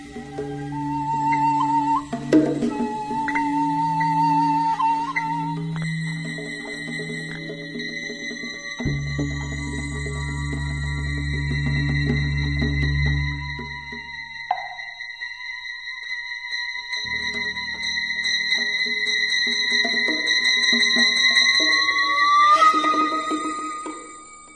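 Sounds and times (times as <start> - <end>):
electronic instruments: 0.0 - 24.5
percussion: 0.0 - 24.5.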